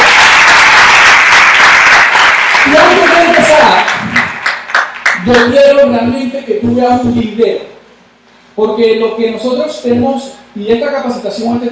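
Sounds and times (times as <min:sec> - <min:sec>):
audience applause: 0:00.0 - 0:05.5
speech: 0:05.3 - 0:07.7, 0:08.6 - 0:11.6.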